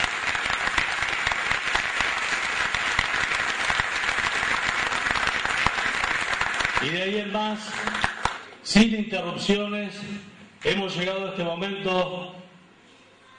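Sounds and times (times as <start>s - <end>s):
audience applause: 0.0s - 8.5s
speech: 6.8s - 12.4s.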